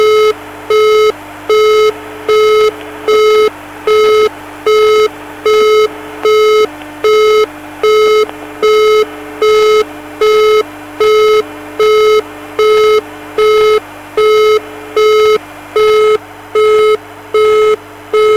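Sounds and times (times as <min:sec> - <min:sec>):
acid synth DTMF dial tones: 0:00.0 - 0:18.3.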